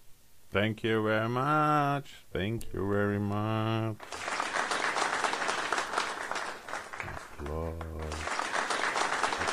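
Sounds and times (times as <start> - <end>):
speech: 0.5 - 4.3
audience applause after a talk: 4.0 - 9.5.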